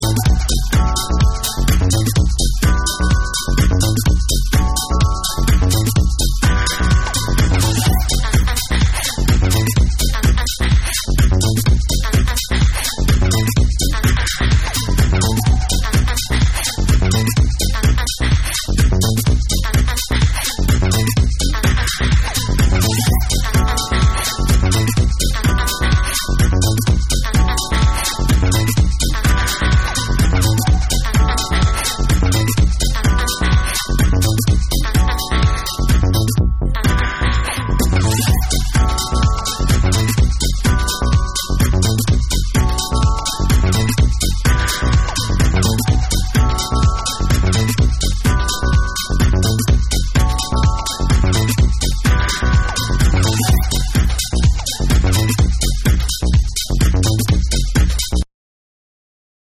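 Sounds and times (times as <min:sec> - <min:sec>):
instrumental music: 0:00.0 - 0:58.2.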